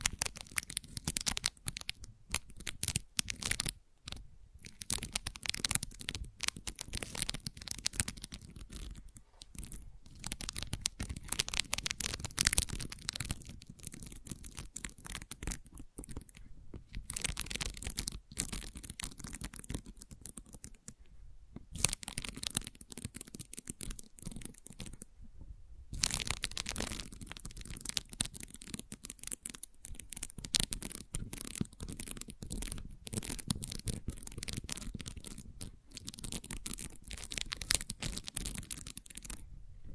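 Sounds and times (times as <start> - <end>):
gentle papery scratching: 0.0 - 21.1, 21.7 - 25.1, 25.9 - 39.9.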